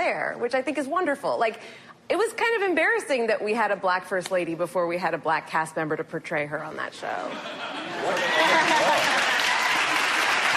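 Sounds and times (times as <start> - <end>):
speech: 0.1 - 8.8
laughter: 7.3 - 9.4
studio audience applauding: 8.0 - 10.5.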